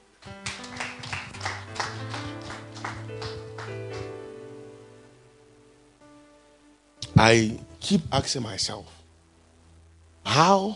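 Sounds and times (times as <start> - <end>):
audience clapping hands: 0.2 - 4.3
speech: 7.2 - 9.0, 10.4 - 10.7.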